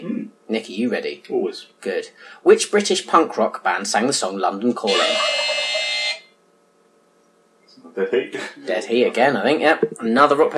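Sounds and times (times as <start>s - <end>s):
speech: 0.5s - 5.9s, 8.0s - 10.5s
electronic quiz buzzer: 4.8s - 6.4s.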